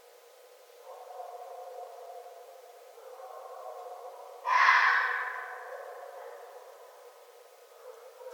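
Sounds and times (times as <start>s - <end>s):
red fox giving hoarse harmonic wails: 4.4s - 6.1s.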